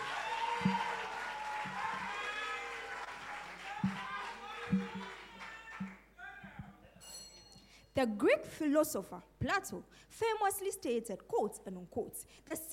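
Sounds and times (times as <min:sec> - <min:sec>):
audience clapping at a high school debate: 0:00.0 - 0:06.1
speech: 0:08.0 - 0:12.7.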